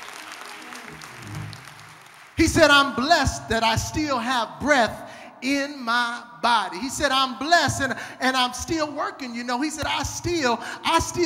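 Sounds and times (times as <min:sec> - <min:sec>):
audience hand clapping: 0:00.0 - 0:02.9
speech: 0:02.4 - 0:11.2.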